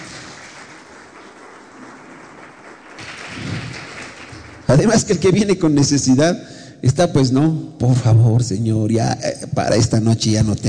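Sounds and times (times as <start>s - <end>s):
crowd applause: 0.0s - 5.2s
speech: 4.7s - 10.6s.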